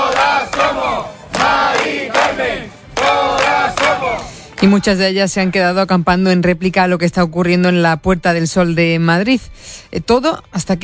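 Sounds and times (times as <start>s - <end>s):
protest crowd chanting: 0.0s - 5.0s
speech: 4.6s - 10.8s.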